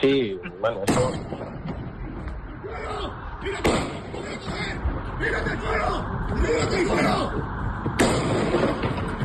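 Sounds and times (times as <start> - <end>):
speech: 0.0 - 1.6, 2.7 - 8.9
gunshots in the background of a recording: 3.6 - 4.7, 8.0 - 9.1.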